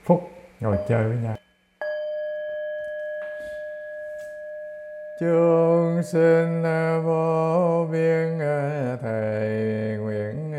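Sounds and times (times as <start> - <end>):
speech: 0.1 - 1.4, 5.2 - 10.5
Buddhist temple bell ringing: 0.7 - 6.4.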